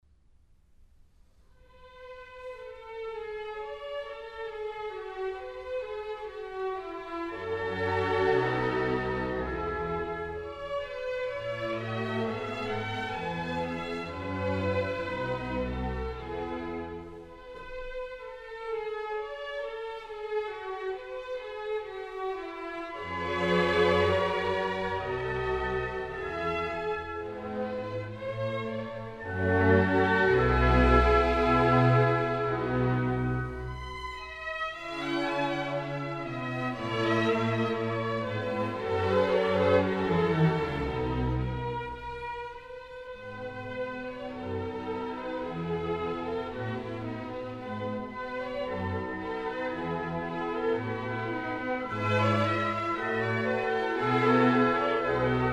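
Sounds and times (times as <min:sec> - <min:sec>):
classical violin piece in A major: 0:01.6 - 0:55.5.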